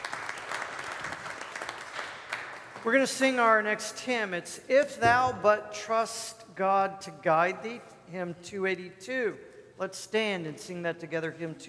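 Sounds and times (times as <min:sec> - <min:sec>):
church congregation applause during a service: 0:00.0 - 0:03.0
speech: 0:02.8 - 0:11.6.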